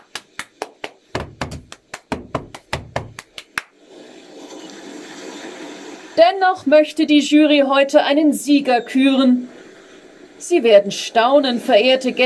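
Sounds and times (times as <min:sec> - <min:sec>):
audience applause: 0:00.0 - 0:03.7
speech: 0:06.2 - 0:09.6, 0:10.5 - 0:12.2.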